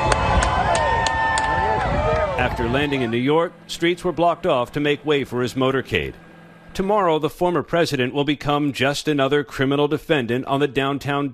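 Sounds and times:
supporters cheering along a motorcade route: 0.0s - 6.6s
speech: 2.4s - 11.3s.

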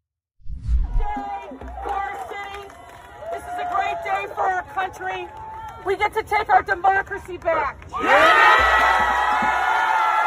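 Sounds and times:
low thumps: 0.4s - 1.9s
giant crowd cheering at a Kamala Harris and Joe Biden event: 1.0s - 6.2s, 7.8s - 10.2s
speech: 4.9s - 9.5s.

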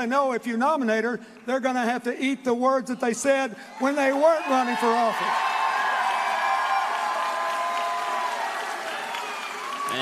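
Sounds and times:
speech: 0.0s - 5.5s
crowd cheering and applauding at rally: 4.3s - 10.0s.

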